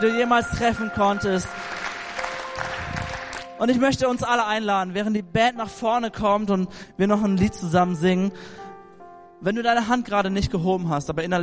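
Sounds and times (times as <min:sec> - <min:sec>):
speech: 0:00.0 - 0:01.7, 0:03.6 - 0:08.6, 0:09.4 - 0:11.4
crowd applauding: 0:01.1 - 0:03.6.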